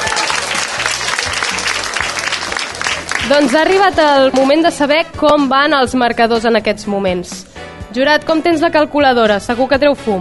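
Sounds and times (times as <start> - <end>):
audience applause: 0.0 - 4.5
speech: 3.3 - 10.1.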